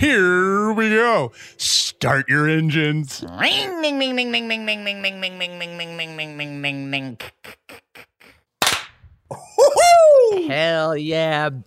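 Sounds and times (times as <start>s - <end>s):
speech: 0.0s - 7.8s, 10.3s - 11.6s
hand clap in sync: 8.6s - 9.0s.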